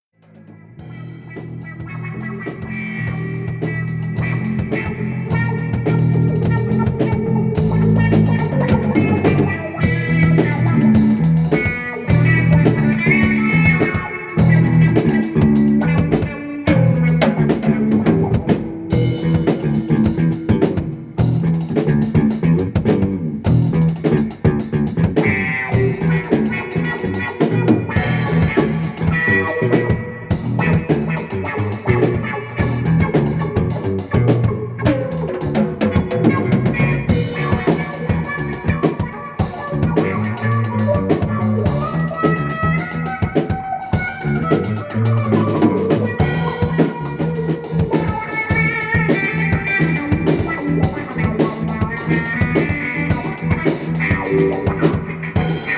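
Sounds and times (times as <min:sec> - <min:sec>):
jazz blues music: 0:00.2 - 0:55.7.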